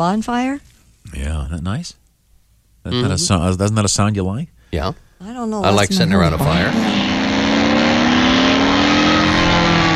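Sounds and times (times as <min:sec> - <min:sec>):
speech: 0:00.0 - 0:02.0, 0:02.8 - 0:07.2
airplane engine roar sound effect: 0:06.0 - 0:09.9.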